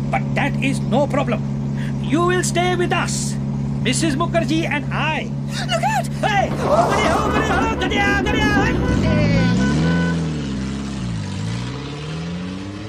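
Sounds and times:
speech: 0:00.1 - 0:09.6
indistinct voices: 0:06.2 - 0:09.7
noisy Morris car driving past: 0:06.3 - 0:12.8.

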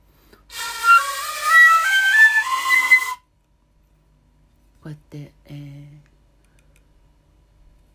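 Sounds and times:
shinobue bamboo transverse flute playing: 0:00.5 - 0:03.3.

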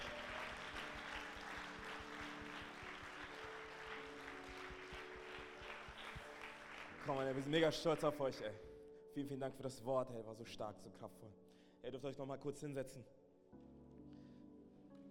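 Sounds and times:
audience applause: 0:00.0 - 0:08.0
speech: 0:07.1 - 0:13.2.

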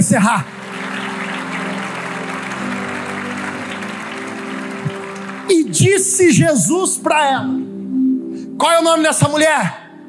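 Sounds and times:
speech: 0:00.0 - 0:00.6, 0:05.5 - 0:07.7, 0:08.6 - 0:09.8
audience applause: 0:00.4 - 0:06.4.

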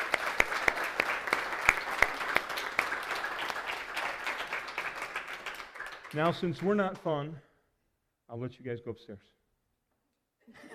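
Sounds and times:
audience applause: 0:00.0 - 0:07.0
speech: 0:06.1 - 0:07.5, 0:08.3 - 0:09.3.

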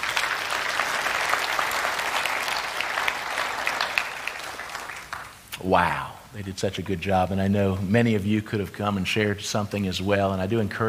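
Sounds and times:
room full of people applauding: 0:00.0 - 0:05.4
speech: 0:05.6 - 0:10.8.

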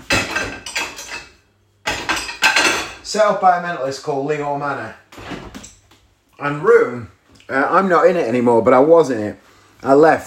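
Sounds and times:
plates clattering as they are loaded into a dishwasher: 0:00.0 - 0:03.1
speech: 0:03.1 - 0:05.0, 0:06.4 - 0:10.2.

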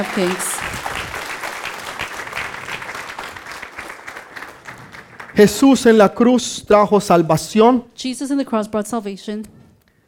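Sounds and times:
speech: 0:00.0 - 0:00.9, 0:05.4 - 0:09.6
audience applause: 0:00.0 - 0:06.0.

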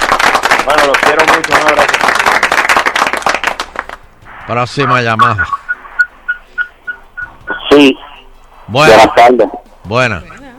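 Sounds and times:
applause sound effect: 0:00.0 - 0:04.0
speech: 0:00.7 - 0:02.2, 0:04.5 - 0:05.6, 0:07.8 - 0:08.0, 0:08.7 - 0:10.3.

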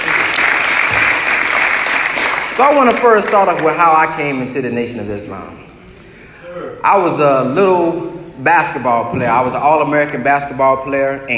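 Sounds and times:
audience applause: 0:00.0 - 0:03.9
speech: 0:02.6 - 0:05.7, 0:06.6 - 0:11.3.

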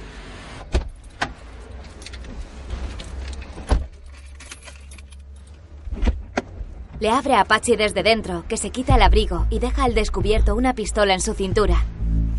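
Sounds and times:
person climbing into car: 0:00.7 - 0:07.0
keys jingling: 0:01.0 - 0:05.8
speech: 0:07.0 - 0:11.9
low rumble: 0:08.0 - 0:12.3.

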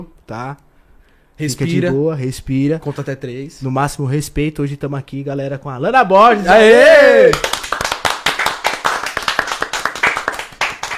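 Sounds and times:
speech: 0:00.0 - 0:00.7, 0:01.4 - 0:07.6
audience clapping: 0:07.3 - 0:10.9.

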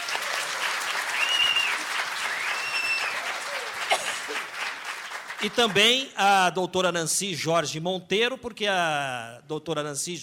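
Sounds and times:
audience applause: 0:00.0 - 0:06.1
speech: 0:05.4 - 0:10.2.

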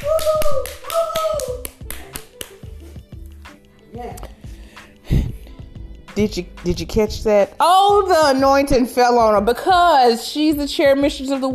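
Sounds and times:
person whooping: 0:00.0 - 0:02.3
hands clapping in applause: 0:00.0 - 0:03.6
speech: 0:06.2 - 0:11.5.

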